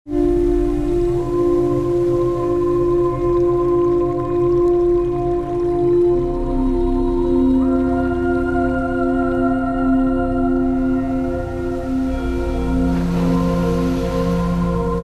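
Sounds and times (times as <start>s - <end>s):
meditation water sounds: 0.1s - 15.0s.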